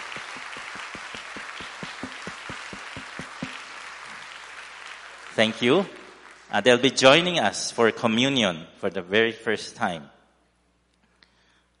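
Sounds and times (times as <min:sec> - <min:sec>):
group applause: 0:00.0 - 0:06.5
speech: 0:05.4 - 0:10.2.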